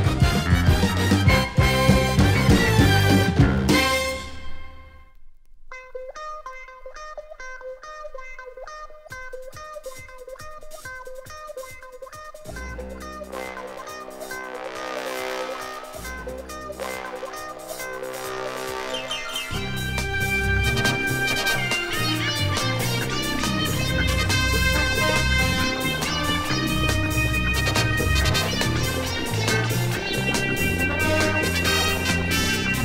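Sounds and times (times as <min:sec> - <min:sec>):
dance-oriented big band and fusion jazz: 0:00.0 - 0:04.8, 0:12.5 - 0:32.8.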